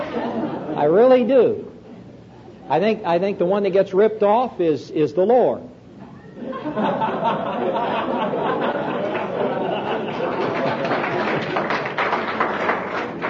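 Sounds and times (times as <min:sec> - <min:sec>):
laughter: 0:00.0 - 0:00.8, 0:06.3 - 0:12.0
speech: 0:00.8 - 0:01.7, 0:02.7 - 0:05.8, 0:06.4 - 0:07.9
audience applause: 0:08.5 - 0:13.2.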